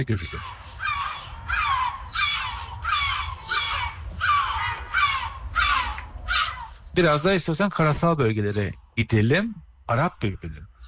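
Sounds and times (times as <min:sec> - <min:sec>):
speech: 0:00.0 - 0:00.6, 0:07.0 - 0:10.7
gull calling: 0:00.0 - 0:06.9
low rumble of noise: 0:00.3 - 0:07.4.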